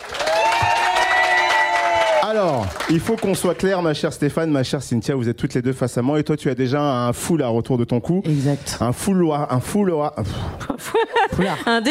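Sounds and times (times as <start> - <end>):
studio audience applause: 0.0 - 4.0
speech: 2.4 - 11.9
laughter: 10.6 - 11.9.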